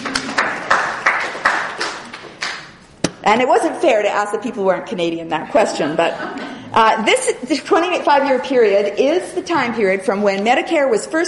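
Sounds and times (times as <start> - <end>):
brief audience applause: 0.0 - 2.7
speech: 3.3 - 11.2.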